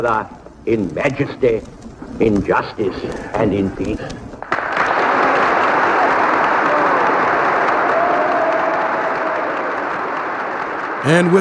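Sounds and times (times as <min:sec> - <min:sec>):
speech: 0:00.0 - 0:04.2, 0:11.0 - 0:11.3
members of Congress roaring with approval: 0:05.0 - 0:10.2, 0:10.9 - 0:11.3.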